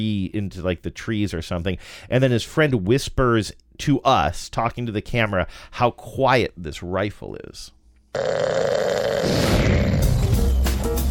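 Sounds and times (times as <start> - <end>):
speech: 0.0 - 9.8
snoring: 8.2 - 10.4.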